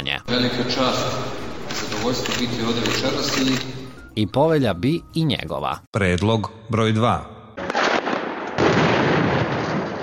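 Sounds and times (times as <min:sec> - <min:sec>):
speech: 0:00.2 - 0:07.3
gunfire: 0:07.6 - 0:10.0.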